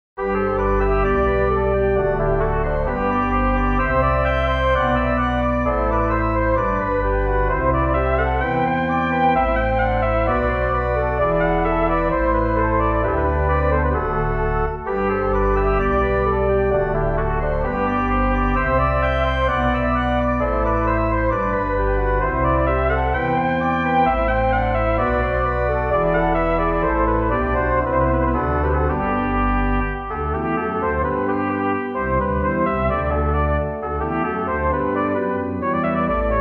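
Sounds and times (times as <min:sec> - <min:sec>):
trumpet melody: 0:00.2 - 0:36.3.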